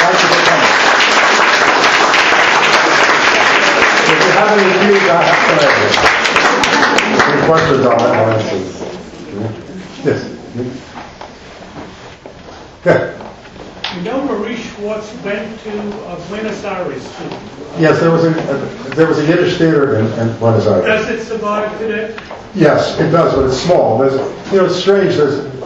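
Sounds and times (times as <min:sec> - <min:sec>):
audience applause: 0:00.0 - 0:08.7
speech: 0:07.5 - 0:10.9, 0:12.8 - 0:13.2, 0:14.0 - 0:25.6.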